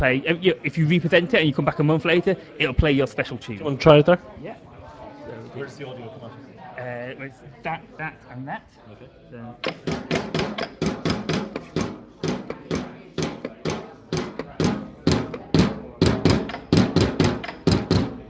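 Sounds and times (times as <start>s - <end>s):
speech: 0.0s - 4.7s, 5.3s - 11.0s
spring-loaded solenoids tapping on a biscuit tin, wooden box and tabletop: 9.6s - 18.2s.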